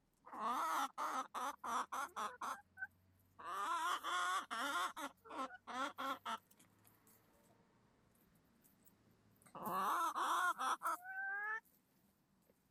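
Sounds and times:
chicken cackling and squawking: 0:00.3 - 0:06.6, 0:09.6 - 0:11.6.

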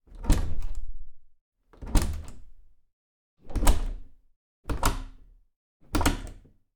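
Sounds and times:
wooden apartment interior door opening and closing: 0:00.0 - 0:01.2, 0:01.8 - 0:02.7, 0:03.4 - 0:06.6.

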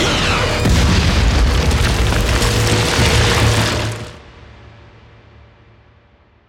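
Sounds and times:
huge explosion: 0:00.0 - 0:04.2.

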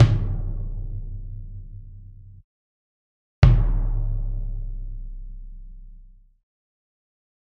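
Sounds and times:
marching band drum kit: 0:00.0 - 0:02.4, 0:03.4 - 0:06.1.

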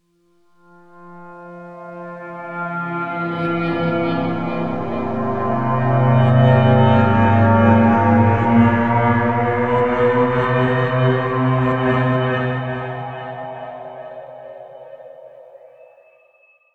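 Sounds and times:
ghost appearing sound: 0:03.3 - 0:16.3.

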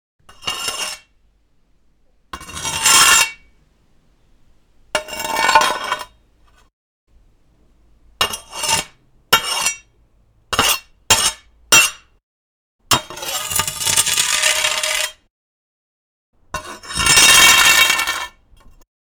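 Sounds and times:
machete scraping on concrete: 0:00.3 - 0:01.2, 0:02.3 - 0:03.6, 0:05.0 - 0:06.7, 0:08.2 - 0:09.9, 0:10.6 - 0:12.1, 0:13.0 - 0:15.2, 0:16.6 - 0:18.8.

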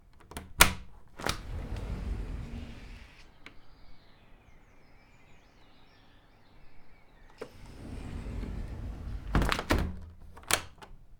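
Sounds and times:
door opening and closing: 0:00.5 - 0:03.3, 0:07.3 - 0:11.0.

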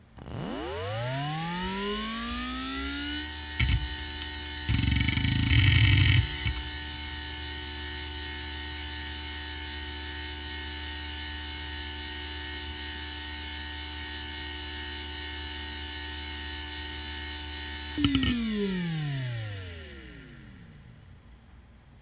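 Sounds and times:
hard drive spinning up: 0:00.0 - 0:07.2, 0:17.8 - 0:21.7.

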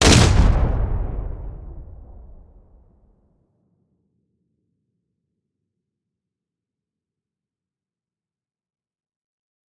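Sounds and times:
artificial rifle shot with massive tail: 0:00.0 - 0:03.0.

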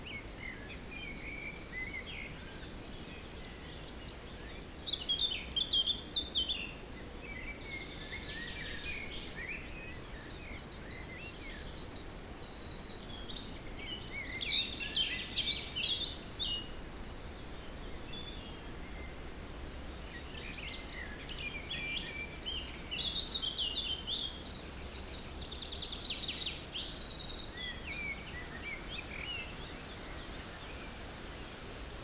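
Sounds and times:
songbirds chorus: 0:00.0 - 0:31.7.

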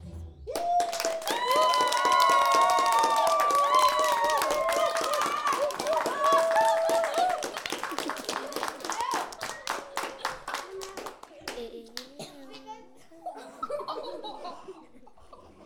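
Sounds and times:
children clapping: 0:00.5 - 0:12.3
laughter: 0:00.9 - 0:15.6.

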